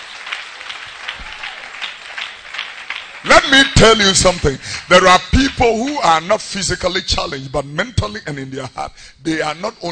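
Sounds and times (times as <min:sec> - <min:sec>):
audience clapping hands: 0:00.0 - 0:06.4
speech: 0:03.2 - 0:09.9.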